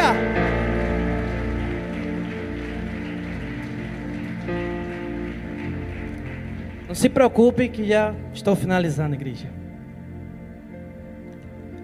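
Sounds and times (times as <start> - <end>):
audience applause: 0.0 - 7.8
sustained keyboard chords: 0.0 - 11.8
speech: 6.9 - 9.6.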